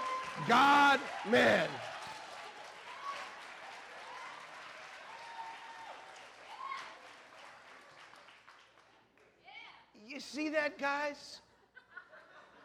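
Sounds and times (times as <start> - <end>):
audience clapping: 0.0 - 9.4
speech: 0.4 - 1.8, 10.4 - 11.4.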